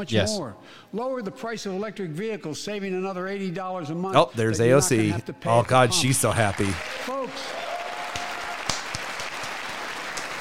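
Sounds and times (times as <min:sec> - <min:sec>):
speech: 0:00.0 - 0:07.6
people clapping in congressional chamber: 0:05.5 - 0:10.3.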